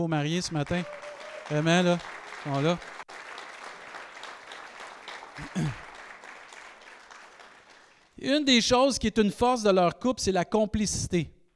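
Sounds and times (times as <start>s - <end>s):
speech: 0.0s - 3.0s, 5.4s - 5.8s, 8.2s - 11.4s
audience applause: 0.6s - 8.2s.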